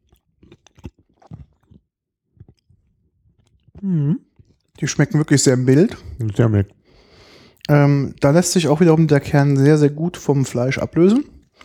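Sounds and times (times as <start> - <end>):
person chewing an olive while tasting it: 0.0 - 7.8, 10.6 - 11.6
speech: 3.8 - 6.8, 7.7 - 11.4.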